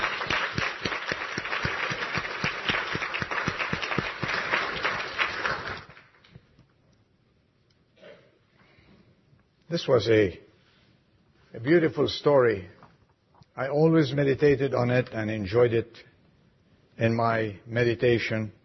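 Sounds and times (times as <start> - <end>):
audience applauding the choir: 0.0 - 6.3
speech: 9.7 - 10.4, 11.6 - 12.8, 13.6 - 16.1, 17.0 - 18.6.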